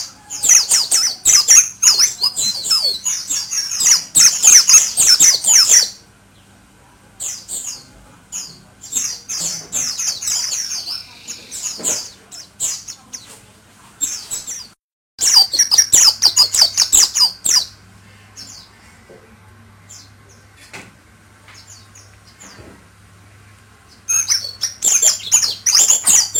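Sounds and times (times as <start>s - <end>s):
Oriental white-eye song: 0.0s - 6.5s, 7.2s - 13.2s, 14.0s - 19.0s, 23.9s - 26.3s.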